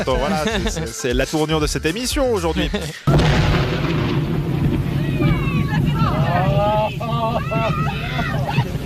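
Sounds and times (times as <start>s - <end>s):
laughter: 0.0s - 1.5s, 2.5s - 3.1s, 5.8s - 8.8s
speech: 0.0s - 3.6s
whale carcass detonation with pieces falling down: 3.1s - 6.7s
people shouting: 4.9s - 8.8s.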